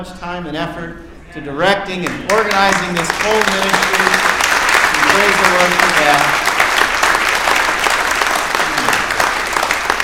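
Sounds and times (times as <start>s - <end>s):
speech: 0.0s - 4.4s, 5.0s - 6.4s
audience applause: 2.0s - 10.0s.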